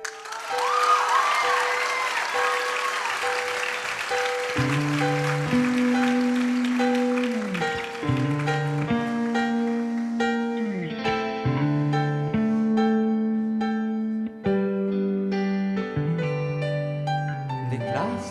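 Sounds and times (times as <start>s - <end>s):
scattered cheers: 0.0s - 4.8s
audience applause for the musicians: 0.0s - 10.6s
sustained instrumental notes and low bass line: 4.5s - 18.2s.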